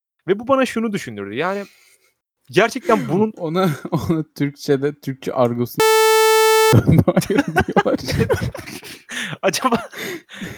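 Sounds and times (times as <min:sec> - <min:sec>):
speech: 0:00.2 - 0:01.9, 0:02.5 - 0:06.0, 0:06.7 - 0:10.5
harsh buzzy PC speaker beep: 0:05.8 - 0:06.8.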